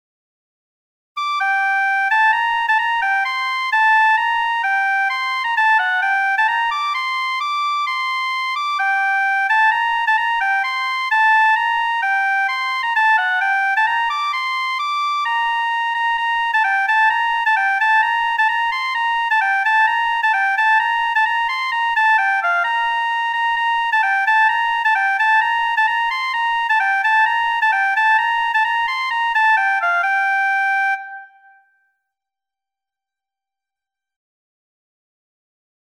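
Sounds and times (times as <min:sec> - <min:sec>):
baroque dance piece: 0:01.2 - 0:31.5.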